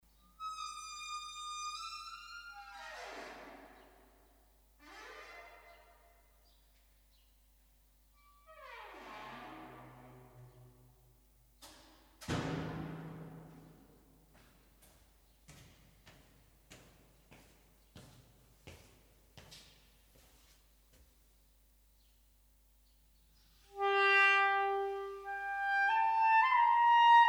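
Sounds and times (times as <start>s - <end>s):
flute sonata in A minor: 23.7s - 27.2s.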